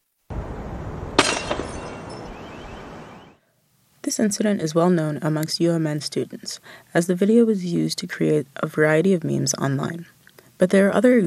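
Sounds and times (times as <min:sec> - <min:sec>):
tinkling glass shards: 0:01.2 - 0:02.3
window glass shattering from microwave thrown through: 0:01.2 - 0:02.4
speech: 0:04.1 - 0:11.2.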